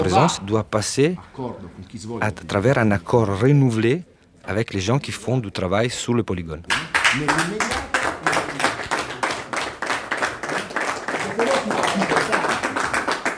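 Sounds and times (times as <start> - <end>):
speech: 0.0 - 7.9
shepherds applauding: 6.7 - 13.3.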